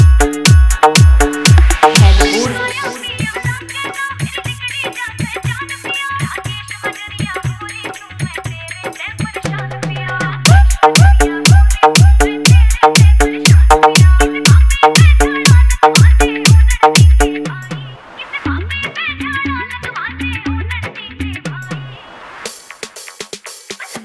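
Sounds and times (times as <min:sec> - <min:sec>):
full dance remix music: 0:00.0 - 0:18.6.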